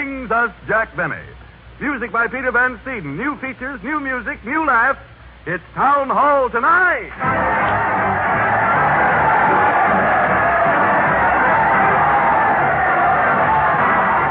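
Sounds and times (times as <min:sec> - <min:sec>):
speech: 0:00.3 - 0:07.9
crowd cheering: 0:07.1 - 0:14.2.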